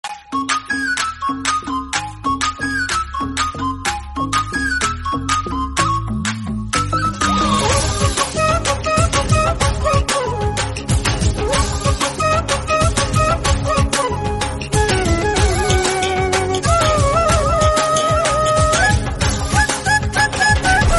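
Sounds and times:
flute background music: 0.0 - 20.9.

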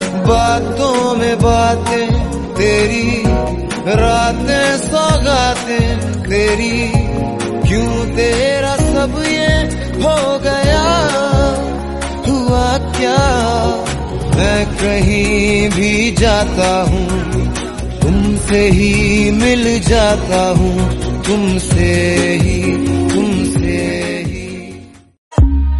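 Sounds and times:
Hindi song: 0.0 - 25.1.

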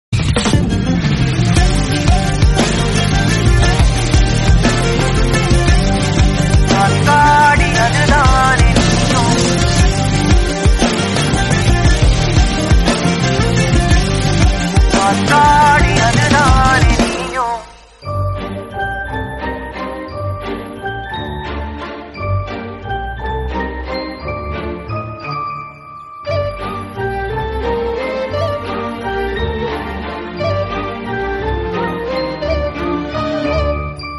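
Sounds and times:
instrumental background music: 0.2 - 34.1.

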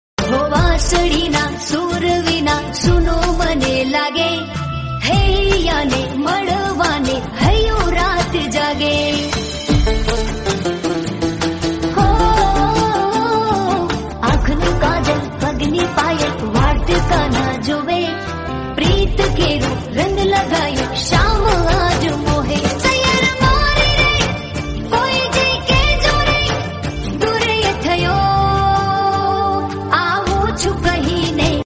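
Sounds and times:
romantic Gujarati song: 0.2 - 31.6.

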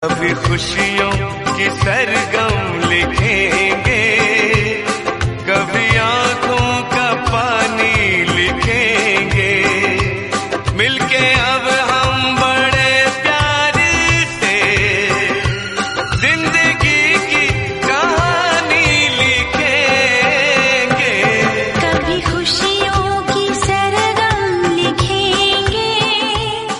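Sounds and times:
romantic Hindi song: 0.0 - 26.7.

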